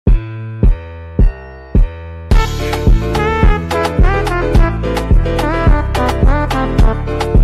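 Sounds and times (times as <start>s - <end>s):
dance song: 0.1s - 7.4s.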